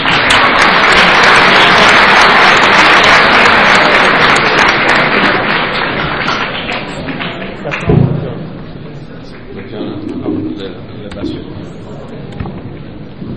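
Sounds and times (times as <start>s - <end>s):
audience applause: 0.0s - 7.9s.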